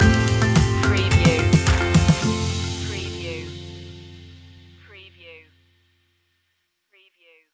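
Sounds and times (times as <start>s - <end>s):
taking flight music stinger: 0.0s - 4.9s.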